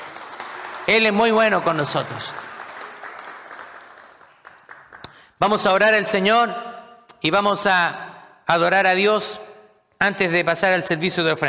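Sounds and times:
audience applauding: 0.0 - 5.3
speech: 0.9 - 2.4, 5.4 - 9.4, 10.0 - 11.4.

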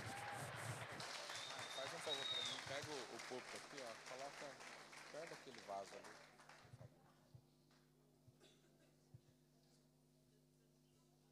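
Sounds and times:
crowd clapping and cheering: 0.0 - 6.9.

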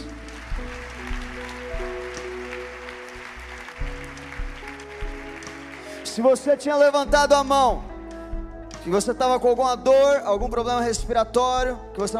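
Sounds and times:
audience clapping: 0.0 - 6.6
sustained keyboard chords: 0.0 - 12.1
speech: 6.2 - 7.9, 8.8 - 12.1.

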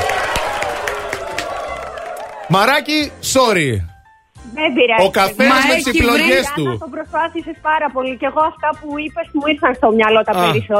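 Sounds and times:
applause: 0.0 - 2.9
cheering: 0.0 - 2.9
speech: 2.5 - 10.7.

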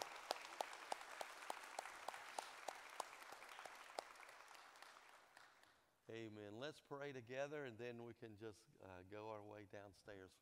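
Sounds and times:
audience applause: 0.0 - 5.7
speech: 6.1 - 10.4.

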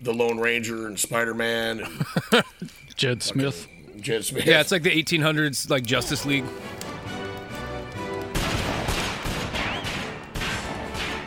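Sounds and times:
speech: 0.0 - 6.9
laughter: 1.8 - 3.5, 4.2 - 4.8
heavy gunfire: 8.3 - 11.2.

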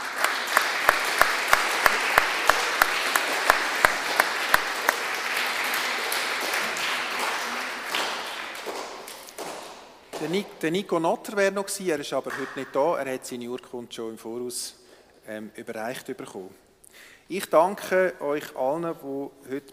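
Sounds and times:
crowd applauding: 0.0 - 10.4
sharp rhythmic claps: 0.0 - 10.6, 12.2 - 12.9
speech: 10.2 - 19.7.

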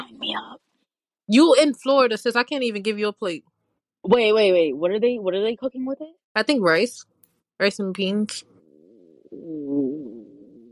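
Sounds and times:
speech: 1.3 - 8.5, 9.3 - 10.3
stomach growling: 8.6 - 10.7.

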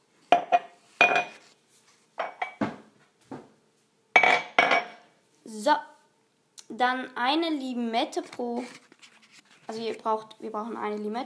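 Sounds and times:
drinking glasses clinking as taken out: 0.3 - 1.4, 2.2 - 2.6, 4.2 - 5.0
speech: 5.5 - 5.9, 6.7 - 8.9, 9.7 - 11.2.

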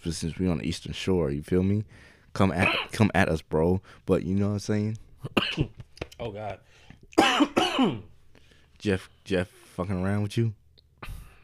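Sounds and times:
speech: 0.0 - 8.1, 8.8 - 11.2
coughing after swallowing spit wrong: 2.6 - 3.0, 5.2 - 5.8, 7.2 - 8.1.

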